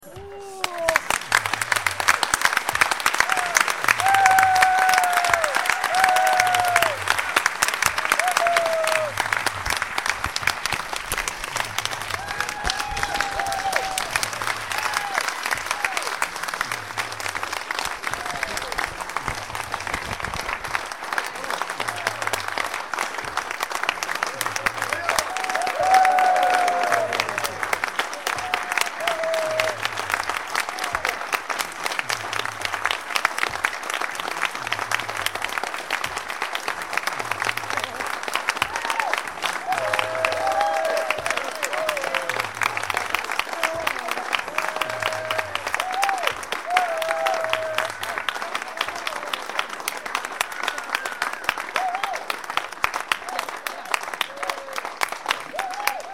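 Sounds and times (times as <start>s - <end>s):
applause: 0.0s - 56.1s.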